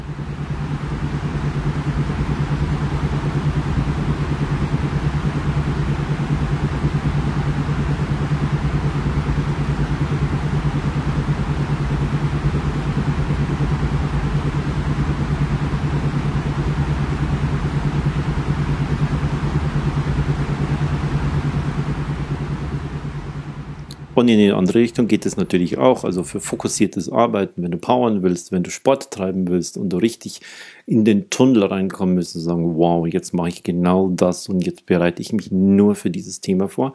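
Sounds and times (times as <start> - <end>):
sleep beats low humming drone: 0.0 - 26.8
soft rumbling noise: 0.0 - 27.8
speech: 24.2 - 36.9.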